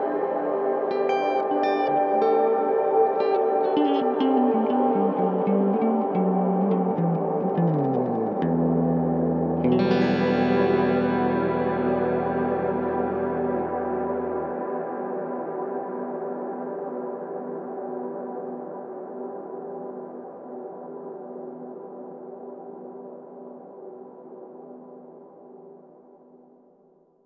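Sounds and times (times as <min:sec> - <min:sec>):
ambient haze: 0:00.0 - 0:26.0.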